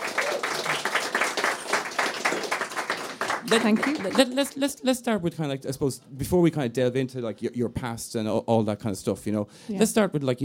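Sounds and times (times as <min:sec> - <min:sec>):
audience applause: 0:00.0 - 0:04.7
speech: 0:03.5 - 0:10.4.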